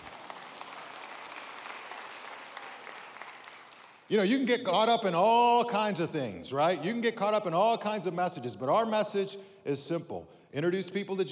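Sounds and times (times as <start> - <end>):
audience clapping: 0.0 - 4.1
speech: 4.1 - 11.3.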